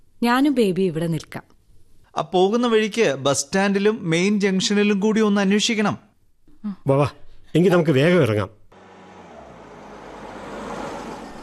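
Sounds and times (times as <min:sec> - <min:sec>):
speech: 0:00.2 - 0:01.5, 0:02.2 - 0:08.6
car arriving with engine and road rumble: 0:08.7 - 0:11.4.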